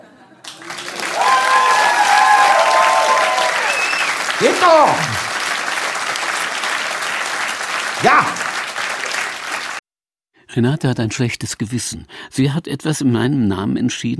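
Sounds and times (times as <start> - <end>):
loud sustained audience applause: 0.4 - 9.8
person cheering: 0.7 - 5.3, 8.0 - 8.6
whistles: 2.4 - 4.3
speech: 4.6 - 5.2, 10.6 - 14.1.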